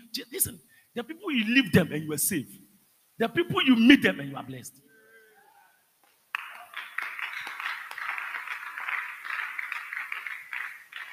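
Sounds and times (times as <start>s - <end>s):
speech: 0.2s - 2.6s, 3.2s - 4.9s
audience clapping: 6.0s - 11.1s.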